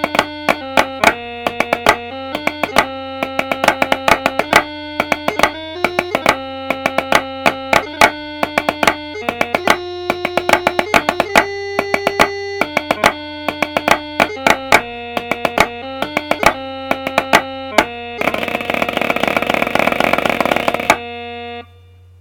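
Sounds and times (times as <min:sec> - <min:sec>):
snare drum: 0:00.0 - 0:21.0.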